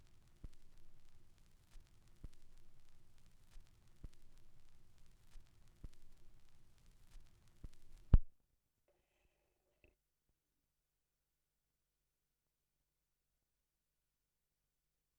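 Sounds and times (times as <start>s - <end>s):
vinyl record noise: 0.0s - 8.3s.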